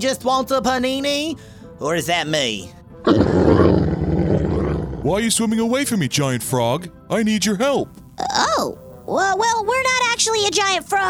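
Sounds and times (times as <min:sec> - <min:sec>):
speech: 0:00.0 - 0:03.8, 0:05.0 - 0:11.0
angry walrus roaring: 0:03.1 - 0:05.2.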